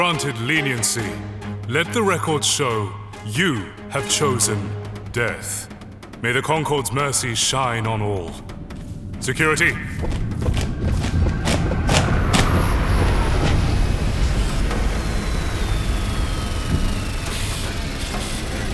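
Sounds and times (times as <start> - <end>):
speech: 0.0 - 8.6, 9.2 - 10.2
spaceship arriving with deep steady roaring rumble: 8.4 - 18.7
sharp clanking thumps: 8.5 - 14.9
thin high-pitched whines gliding downward: 10.4 - 18.7.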